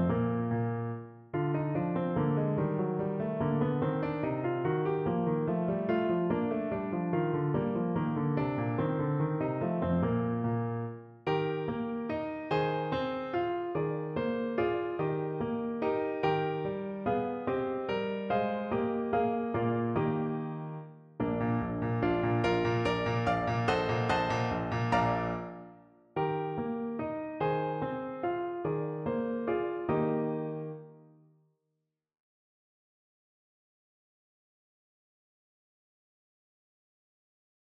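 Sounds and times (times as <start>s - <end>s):
allemande played on piano: 0.0s - 31.2s.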